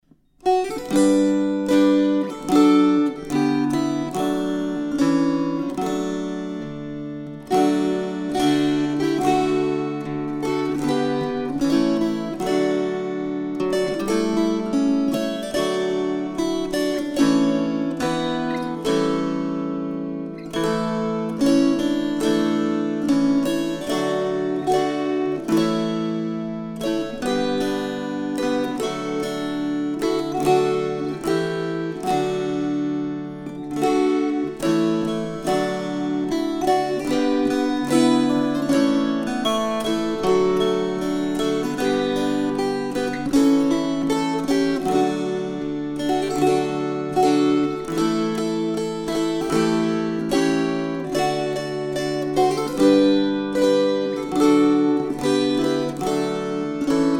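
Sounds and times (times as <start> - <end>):
string choir: 0.6 - 57.1.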